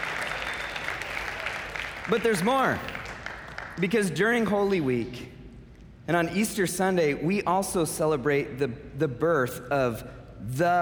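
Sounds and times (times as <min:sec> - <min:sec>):
audience clapping: 0:00.0 - 0:04.4
speech: 0:02.1 - 0:02.9, 0:03.8 - 0:05.4, 0:06.1 - 0:10.8.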